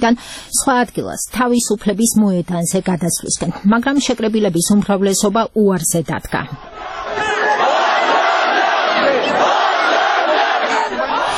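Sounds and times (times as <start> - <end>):
speech: 0.0 - 6.7
protesters on Baghramyan Avenue chanting against an electricity tariff increase: 6.6 - 11.3.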